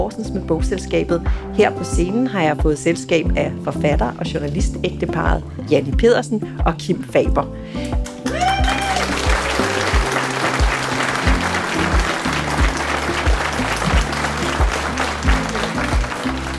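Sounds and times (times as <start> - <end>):
speech: 0.0 - 8.1
audience applause: 8.1 - 16.5.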